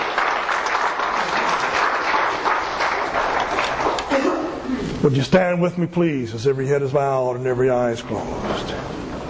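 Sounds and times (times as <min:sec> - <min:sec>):
audience applause: 0:00.0 - 0:04.3
speech: 0:05.0 - 0:09.0.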